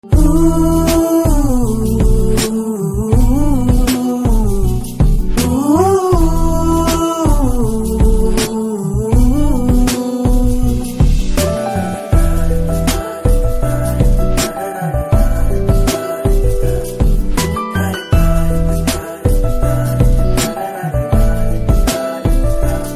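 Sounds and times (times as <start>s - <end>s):
background humming: 0.0s - 22.9s.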